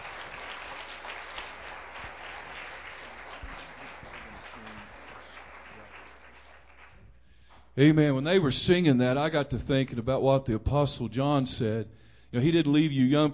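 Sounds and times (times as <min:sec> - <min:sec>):
church audience applause welcoming a host pastor: 0:00.0 - 0:07.8
speech: 0:07.8 - 0:13.3.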